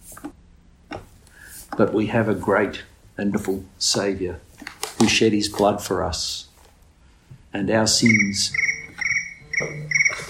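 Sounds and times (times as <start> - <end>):
speech: 1.8 - 6.5, 7.6 - 8.6
mobile phone ringtone: 8.0 - 10.2.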